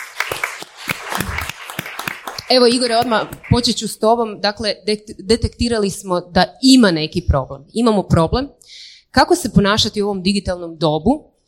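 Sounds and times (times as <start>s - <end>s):
scattered audience applause for a guest at a talk event: 0.0s - 3.6s
speech: 2.5s - 11.3s.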